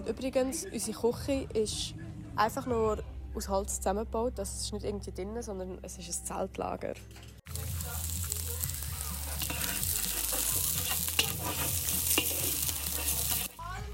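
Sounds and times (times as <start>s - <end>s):
speech: 0.0s - 7.3s
chili stirred in huge cooking pots over a gas stove: 7.2s - 13.9s
chili sizzling in huge cooking pots: 7.5s - 13.9s
cooking pots clanking: 9.2s - 13.6s.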